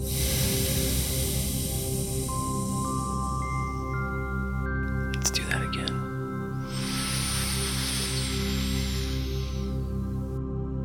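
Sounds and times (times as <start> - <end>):
long slow deep breath exhaled: 0.0 - 4.0, 6.6 - 10.3
quiet sustained tones: 0.0 - 10.3.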